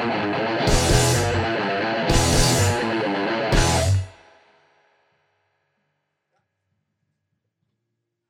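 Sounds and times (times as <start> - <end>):
raw instrumental music without vocals: 0.0 - 4.3.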